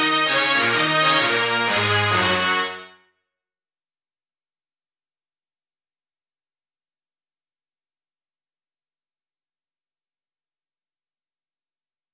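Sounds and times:
brass instruments: 0.0s - 3.2s.

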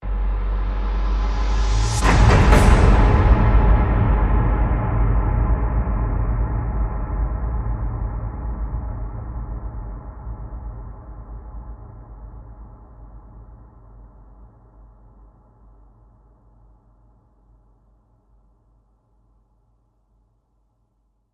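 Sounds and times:
terrifying horror hit: 0.1s - 9.2s.

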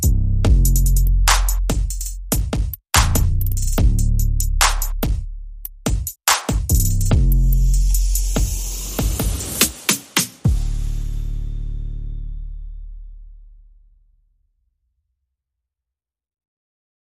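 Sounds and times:
drums: 0.0s - 12.2s.

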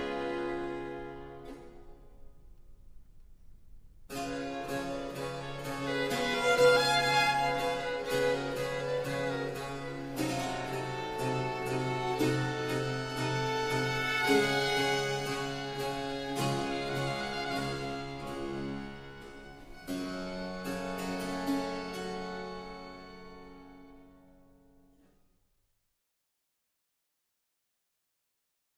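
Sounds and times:
concerto in G minor for violin, strings and basso continuo: 0.0s - 1.6s, 4.2s - 24.1s.

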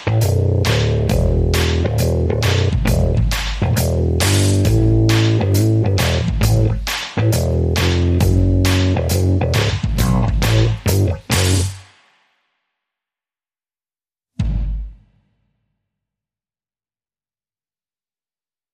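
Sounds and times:
bass: 0.0s - 11.8s
drums: 0.0s - 12.3s, 14.4s - 15.4s.

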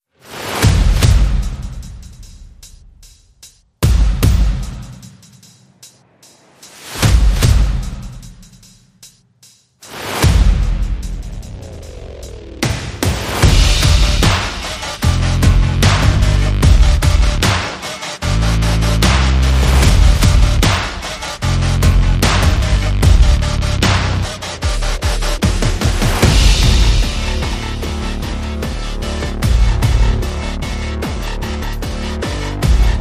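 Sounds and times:
drum and bass mix: 0.6s - 32.9s.

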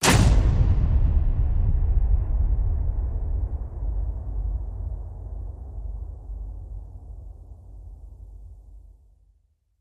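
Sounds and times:
horror stinger hit salvo: 0.0s - 7.8s.

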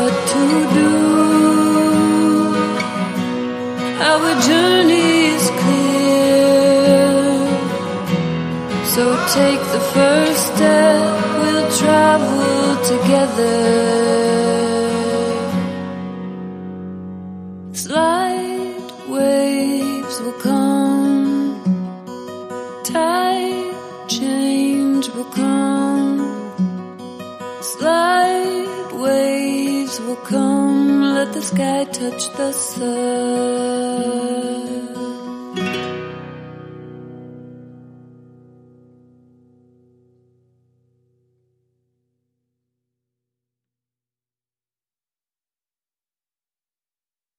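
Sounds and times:
person singing: 0.0s - 16.2s, 17.8s - 26.6s, 27.5s - 35.9s
acoustic guitars: 0.0s - 41.9s.

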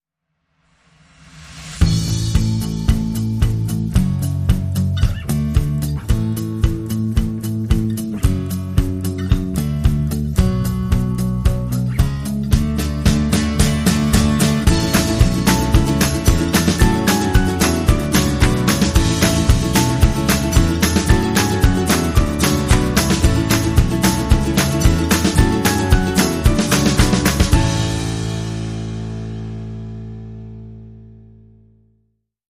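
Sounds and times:
indie anthem music: 1.7s - 31.2s.

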